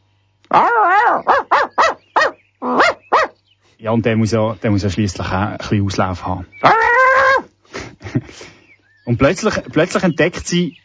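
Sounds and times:
Border Collie barking and yipping: 0:00.5 - 0:03.4
Border Collie whine-like howl: 0:00.5 - 0:03.4, 0:06.6 - 0:07.5
speech: 0:03.8 - 0:06.9, 0:08.1 - 0:10.8.

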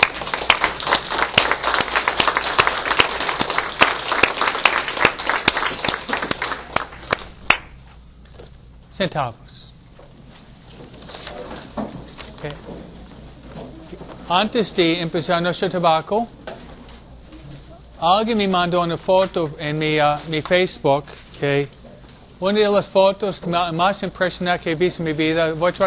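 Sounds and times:
audience applause: 0:00.0 - 0:07.6
speech: 0:09.0 - 0:09.6, 0:12.4 - 0:13.0, 0:14.3 - 0:16.4, 0:18.0 - 0:21.8, 0:22.4 - 0:25.8.

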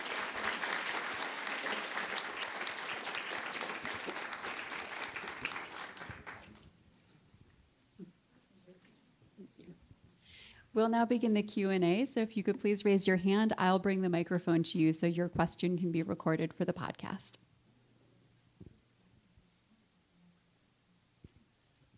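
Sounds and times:
audience applause: 0:00.0 - 0:06.6
speech: 0:10.8 - 0:17.4.

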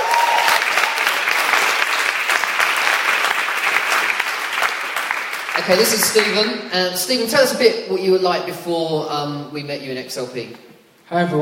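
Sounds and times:
audience applause: 0:00.0 - 0:06.8
speech: 0:05.6 - 0:11.4.

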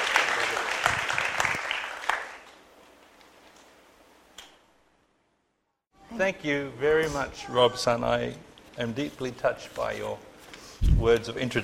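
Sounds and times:
audience applause: 0:00.0 - 0:02.6
speech: 0:06.2 - 0:11.6.

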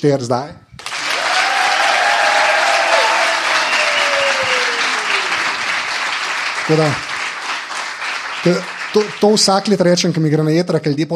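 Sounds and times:
speech: 0:00.0 - 0:00.6, 0:06.7 - 0:07.1, 0:08.4 - 0:11.1
audience applause: 0:00.8 - 0:09.9
faint gliding whistle-like tone: 0:03.0 - 0:05.8.

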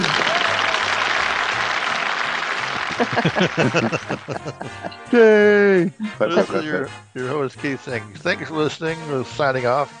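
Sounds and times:
laughter: 0:00.0 - 0:00.8, 0:02.7 - 0:06.9
audience applause: 0:00.0 - 0:05.0
speech: 0:03.0 - 0:09.9.

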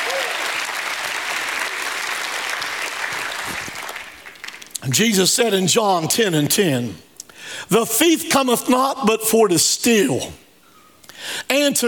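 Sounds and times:
audience shouting praise: 0:00.0 - 0:01.9
audience hand clapping: 0:00.0 - 0:04.8
speech: 0:04.8 - 0:10.4, 0:11.2 - 0:11.8.

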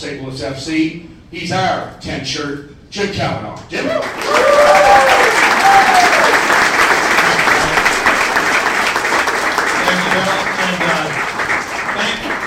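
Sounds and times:
speech: 0:00.0 - 0:05.1
audience applause: 0:03.9 - 0:12.4.

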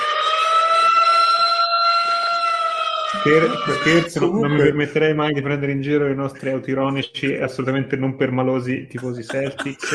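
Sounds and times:
siren wailing: 0:00.0 - 0:04.8
laughter: 0:03.1 - 0:04.9, 0:08.9 - 0:09.9
speech: 0:03.1 - 0:09.9.

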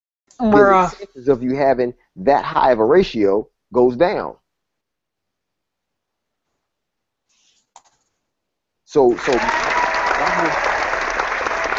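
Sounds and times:
speech: 0:00.4 - 0:04.4, 0:08.9 - 0:09.6, 0:10.4 - 0:10.7
audience clapping: 0:08.9 - 0:11.7.

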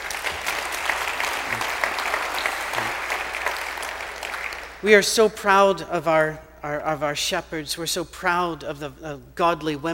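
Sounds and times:
audience applause: 0:00.0 - 0:04.8
speech: 0:04.8 - 0:09.9.

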